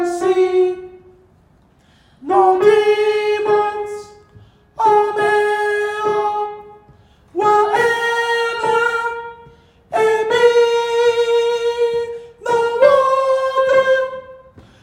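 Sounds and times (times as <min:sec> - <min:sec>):
soprano singing gospel: 0:00.0 - 0:01.2, 0:02.2 - 0:14.8.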